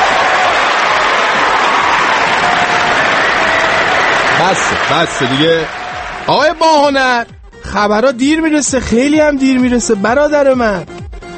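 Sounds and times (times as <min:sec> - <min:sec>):
audience applause: 0:00.0 - 0:07.0
speech: 0:04.5 - 0:11.3.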